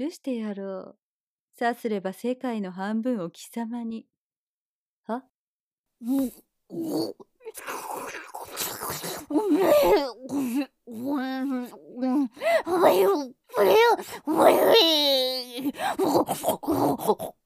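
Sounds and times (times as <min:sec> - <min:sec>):
speech: 0:00.0 - 0:01.0, 0:01.6 - 0:04.1, 0:05.1 - 0:05.3, 0:06.0 - 0:08.2, 0:08.9 - 0:17.4
woman squealing and grunting like a pig: 0:07.5 - 0:17.4.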